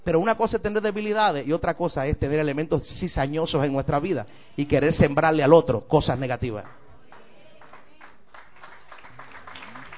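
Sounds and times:
speech: 0:00.1 - 0:06.8
audience applauding: 0:06.6 - 0:09.9.

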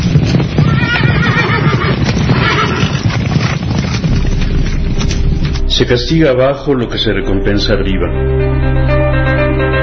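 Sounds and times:
horses whinnying: 0:00.0 - 0:04.8
galloping hooves: 0:00.0 - 0:05.7
speech: 0:05.8 - 0:09.7.

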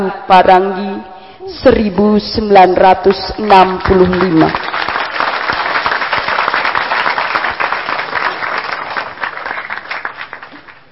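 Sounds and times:
speech: 0:00.0 - 0:04.7
audience applause: 0:03.8 - 0:10.9.

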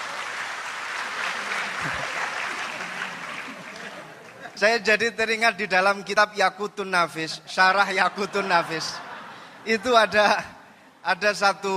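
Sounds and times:
audience applause at a religious lecture event: 0:00.0 - 0:04.6
laughter: 0:01.1 - 0:04.6, 0:07.7 - 0:11.3
speech: 0:04.6 - 0:09.0, 0:09.6 - 0:11.7.

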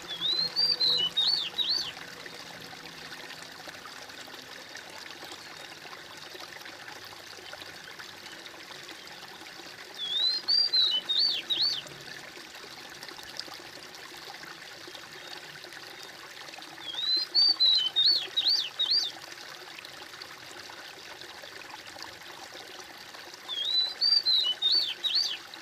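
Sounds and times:
bird singing whistles: 0:00.1 - 0:01.9, 0:10.0 - 0:11.8, 0:16.8 - 0:19.1, 0:23.5 - 0:25.4.

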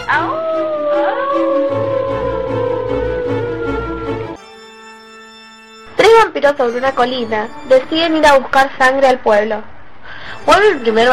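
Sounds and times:
wolves howling: 0:00.0 - 0:04.4
speech: 0:06.5 - 0:09.7, 0:10.4 - 0:11.1.

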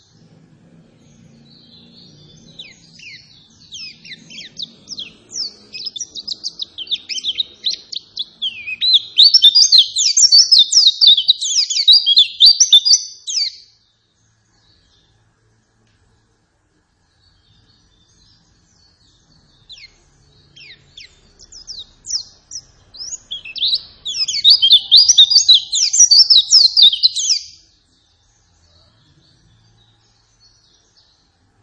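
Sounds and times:
white-eye singing: 0:00.0 - 0:13.7, 0:19.4 - 0:27.8.

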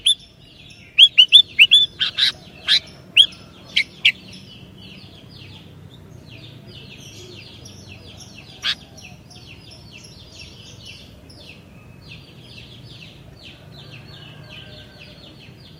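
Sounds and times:
Sooty-headed bulbul song: 0:00.0 - 0:04.3.

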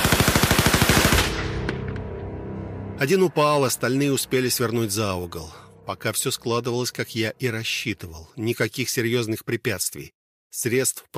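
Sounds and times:
machine gun burst: 0:00.0 - 0:01.5
speech: 0:03.0 - 0:11.1.

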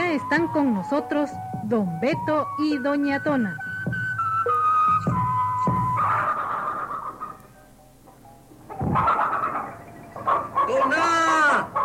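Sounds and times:
speech: 0:00.2 - 0:03.7
chickens clucking while being chased: 0:04.4 - 0:11.8.

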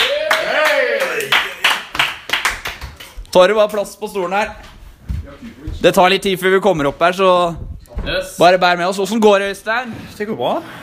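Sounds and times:
audience applause: 0:00.0 - 0:03.0
speech: 0:03.4 - 0:04.7, 0:05.8 - 0:10.8.

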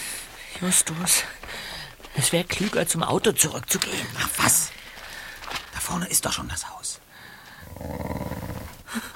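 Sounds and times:
speech: 0:00.6 - 0:04.9, 0:05.9 - 0:07.0
fierce dogs growling and snarling: 0:07.6 - 0:09.0.

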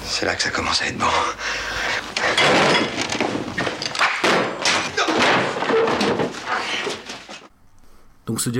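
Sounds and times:
speech: 0:00.1 - 0:01.6, 0:08.3 - 0:08.5
table tipped over and rug yanked away in a film scene: 0:02.1 - 0:07.5.

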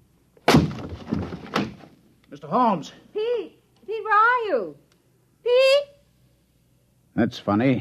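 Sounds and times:
loud impact: 0:00.4 - 0:01.8
locked door forced open with a heavy crash: 0:00.5 - 0:01.9
splintering and rattling debris: 0:00.5 - 0:01.9
speech: 0:02.3 - 0:03.5, 0:04.1 - 0:04.8, 0:07.2 - 0:07.7.

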